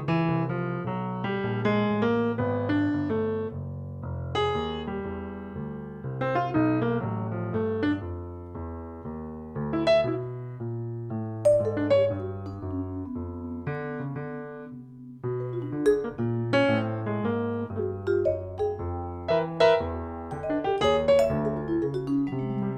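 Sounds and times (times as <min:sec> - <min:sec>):
Rhodes electric piano playing free jazz: 0:00.0 - 0:22.7
vibraphone playing free jazz: 0:11.5 - 0:13.9, 0:15.4 - 0:17.0, 0:17.7 - 0:22.7.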